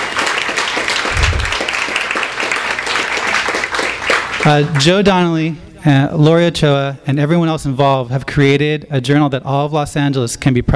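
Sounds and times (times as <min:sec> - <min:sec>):
audience clapping: 0:00.0 - 0:05.0
speech: 0:04.4 - 0:10.7.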